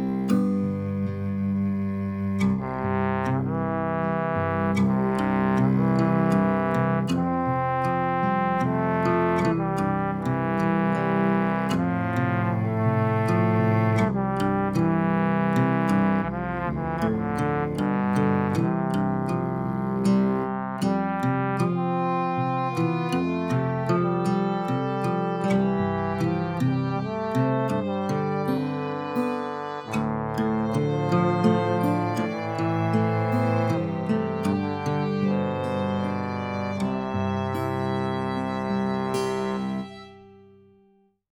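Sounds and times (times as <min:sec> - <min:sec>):
trombone: 0:00.2 - 0:40.1.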